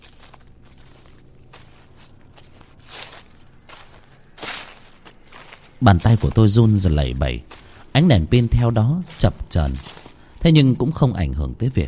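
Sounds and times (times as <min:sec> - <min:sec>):
footsteps crunching and rustling through dry leaves: 0:00.0 - 0:10.6
speech: 0:05.8 - 0:11.8.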